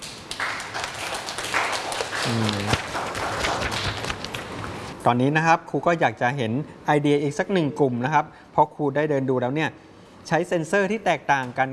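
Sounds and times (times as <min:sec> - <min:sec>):
classroom applause: 0:00.0 - 0:04.8
speech: 0:02.3 - 0:02.9, 0:05.0 - 0:11.7.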